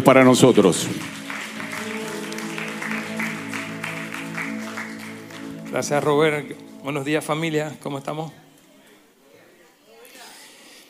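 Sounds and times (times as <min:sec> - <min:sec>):
speech: 0:00.0 - 0:01.2, 0:05.8 - 0:08.4
loud audience applause: 0:00.0 - 0:06.2.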